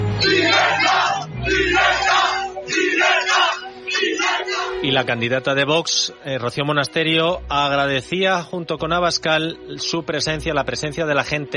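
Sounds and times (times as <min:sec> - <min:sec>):
crowd of Vox supporters shouting chants: 0:00.1 - 0:04.8
speech: 0:05.0 - 0:11.5.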